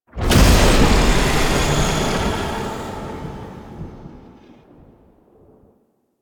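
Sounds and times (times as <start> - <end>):
rune despawn sound effect: 0.2 - 4.8.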